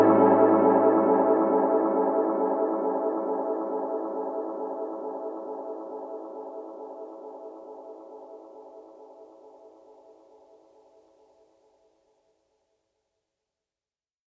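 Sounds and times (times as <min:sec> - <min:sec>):
VR-09 JP8 synthesizer strings: 0:00.0 - 0:05.9.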